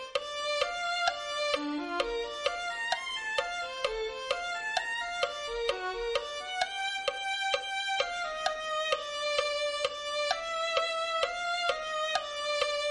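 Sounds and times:
violin playing a hymn: 0.0s - 12.9s.

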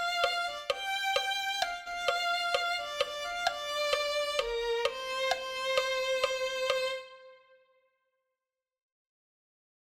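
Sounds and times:
violin: 0.0s - 7.9s.

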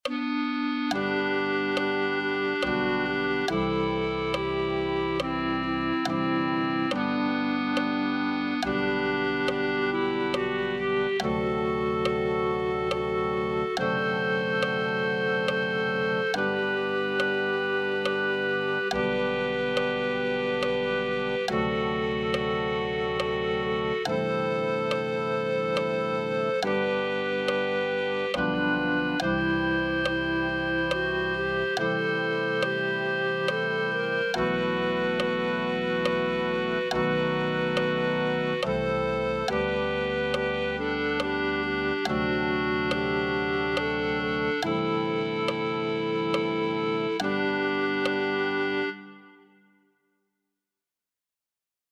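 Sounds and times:
clarinet: 0.0s - 49.7s.

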